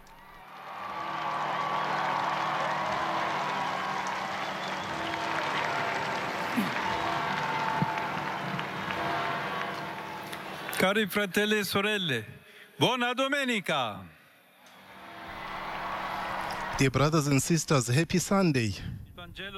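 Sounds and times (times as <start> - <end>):
enthusiastic crowd applauding and cheering: 0.0 - 11.0, 14.8 - 17.7
scattered shouts: 5.3 - 10.2
speech: 10.8 - 14.1, 16.8 - 19.5.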